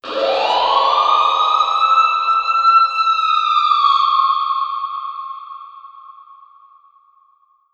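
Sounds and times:
alarm siren samples with reverb at 120 bpm: 0:00.0 - 0:04.6.

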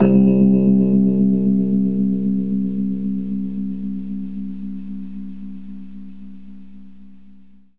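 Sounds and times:
Rhodes electric piano fast in C: 0:00.0 - 0:04.5.

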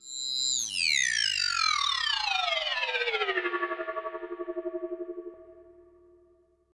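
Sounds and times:
synth effects in hardcore breakbeat: 0:01.1 - 0:06.2.

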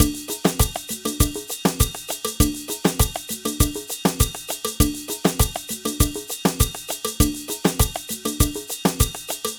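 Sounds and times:
Latin percussion ensemble: 0:00.0 - 0:09.5.

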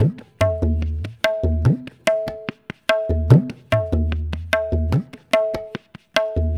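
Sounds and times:
tabla: 0:00.0 - 0:06.5.

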